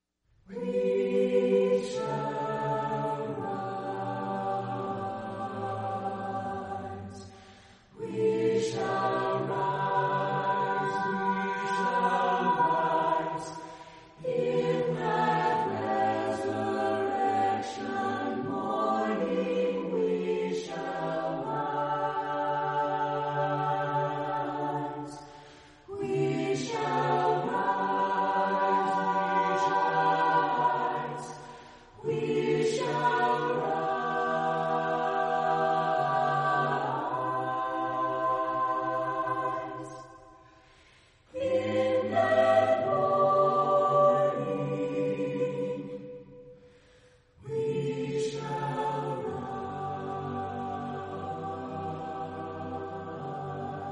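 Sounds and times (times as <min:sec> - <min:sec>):
a cappella chorale singing: 0:00.4 - 0:53.8.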